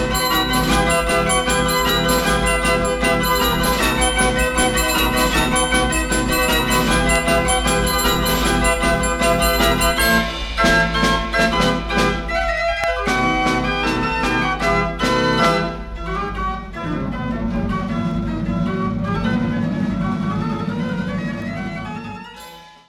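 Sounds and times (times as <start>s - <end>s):
barrel organ playing: 0.0s - 22.8s.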